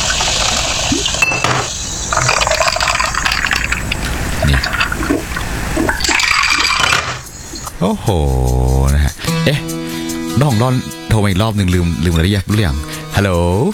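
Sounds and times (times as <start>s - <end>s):
soda being poured into a glass: 0.0s - 7.2s
speech: 7.8s - 9.8s, 10.4s - 13.7s.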